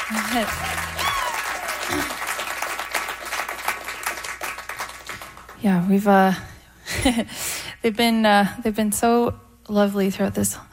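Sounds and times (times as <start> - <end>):
audience applause: 0.0 - 5.6
speech: 0.1 - 1.0, 1.9 - 2.2, 5.6 - 10.7.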